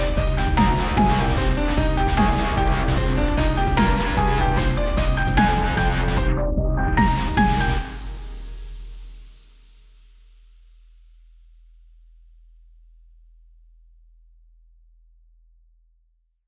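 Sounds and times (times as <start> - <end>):
electronic orchestral music: 0.0 - 8.6.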